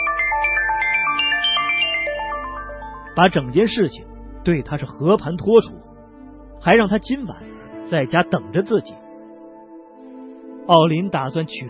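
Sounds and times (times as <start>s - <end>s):
telephone ringing tone: 0.0s - 3.2s
speech: 3.2s - 5.8s, 6.6s - 9.0s, 10.7s - 11.6s.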